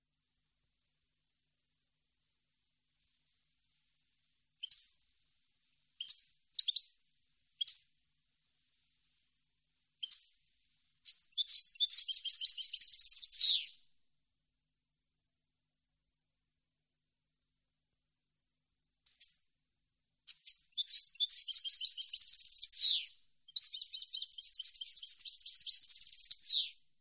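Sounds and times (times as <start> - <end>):
European goldfinch song: 4.6 - 5.0, 6.0 - 7.0, 10.0 - 10.4, 11.0 - 13.8, 20.3 - 26.9.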